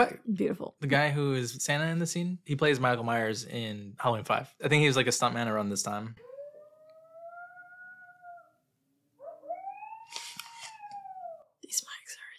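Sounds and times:
speech: 0:00.0 - 0:06.3
coyotes howling: 0:06.2 - 0:08.6, 0:09.2 - 0:11.6.

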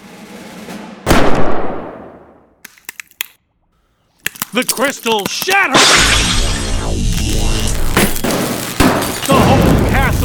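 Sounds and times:
gunshot: 0:01.0 - 0:02.4, 0:05.7 - 0:06.8, 0:08.0 - 0:10.0
speech: 0:04.5 - 0:07.0.

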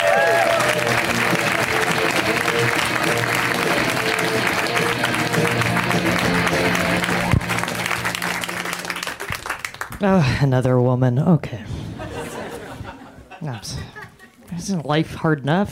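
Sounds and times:
crowd noise: 0:00.0 - 0:09.8, 0:12.0 - 0:13.5
comedy club audience clapping for a comic: 0:00.0 - 0:10.2
speech: 0:10.0 - 0:11.8, 0:14.7 - 0:15.7
laughter: 0:11.8 - 0:14.4.

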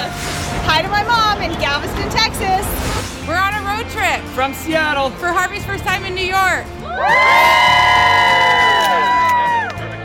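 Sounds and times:
speech: 0:00.8 - 0:08.2
outdoor crowd cheering: 0:06.8 - 0:10.0.

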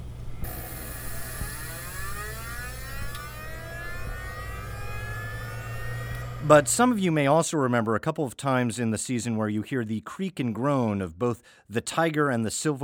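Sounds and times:
old Mac computer warming up: 0:00.0 - 0:07.0
speech: 0:06.5 - 0:12.8.

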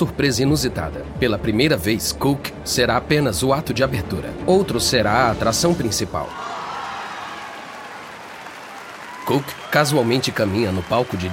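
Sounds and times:
speech: 0:00.0 - 0:06.5, 0:09.3 - 0:11.3
large audience applause: 0:06.2 - 0:11.3.

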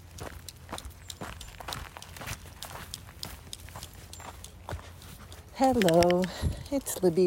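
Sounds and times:
footsteps on an afternoon walk: 0:00.0 - 0:07.2
speech: 0:05.6 - 0:07.2.

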